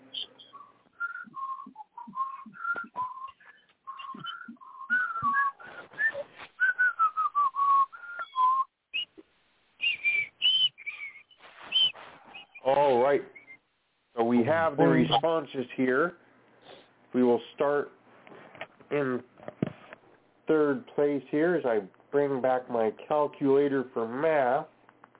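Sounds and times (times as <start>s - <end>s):
person whistling a game show theme tune: 0.1s - 9.1s, 9.8s - 12.6s
speech: 14.5s - 16.2s, 17.1s - 18.0s, 18.9s - 19.3s, 20.5s - 24.7s.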